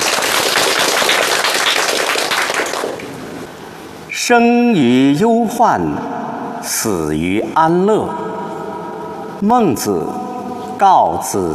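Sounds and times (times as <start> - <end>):
audience applause: 0.0 - 3.2
speech: 4.3 - 8.3, 9.4 - 10.2, 10.8 - 11.5.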